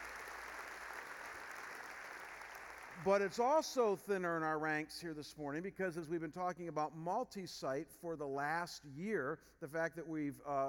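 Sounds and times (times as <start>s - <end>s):
church congregation applause welcoming another venue site: 0.0s - 3.1s
speech: 3.0s - 10.6s.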